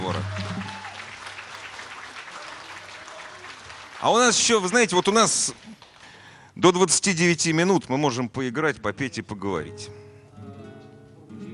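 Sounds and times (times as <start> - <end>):
audience applause: 0.0 - 6.4
speech: 4.0 - 5.7, 6.6 - 10.0.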